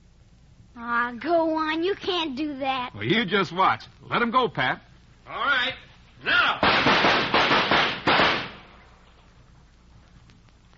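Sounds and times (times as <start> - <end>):
speech: 0.8 - 6.9
gunshots at thrown clay targets: 6.6 - 8.8.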